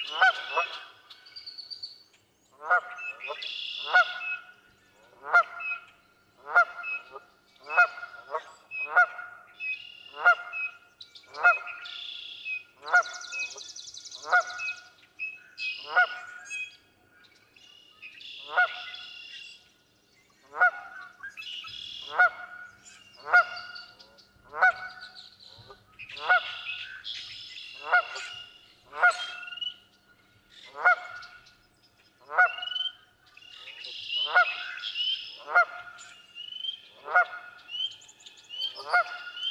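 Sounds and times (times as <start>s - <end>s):
Canada goose calling: 0.0s - 1.0s, 2.6s - 4.6s, 5.2s - 9.4s, 10.0s - 10.8s, 11.4s - 13.6s, 18.4s - 19.4s, 20.5s - 29.8s, 30.7s - 31.4s, 32.3s - 33.0s, 33.6s - 37.9s, 38.6s - 39.5s.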